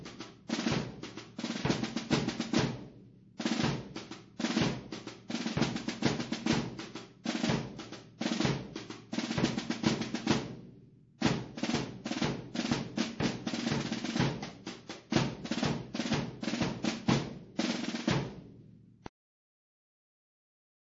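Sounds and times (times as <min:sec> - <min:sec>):
tambores drums: 0:00.0 - 0:19.1.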